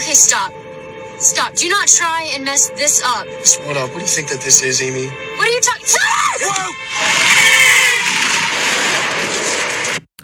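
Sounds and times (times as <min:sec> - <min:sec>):
speech: 0:00.1 - 0:08.0
vehicle noise from a film scene of a car swerving near a truck: 0:03.1 - 0:10.0.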